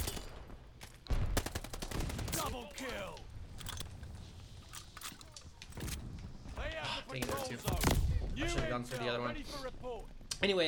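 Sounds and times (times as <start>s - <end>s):
rapid gunfire in the Call of Duty Vanguard beta: 1.2s - 2.6s
speech: 2.5s - 3.3s, 6.7s - 10.6s.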